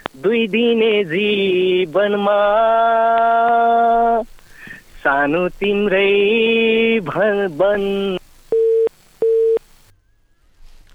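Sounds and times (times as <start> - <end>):
speech: 0.2 - 4.3, 5.0 - 8.2
phone busy tone beeps after a radio show call dropped: 8.5 - 9.6.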